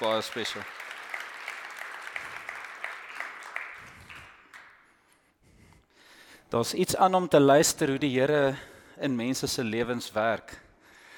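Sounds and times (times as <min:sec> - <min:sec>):
speech: 0:00.0 - 0:00.8, 0:06.5 - 0:10.6
audience clapping hands: 0:00.0 - 0:05.2.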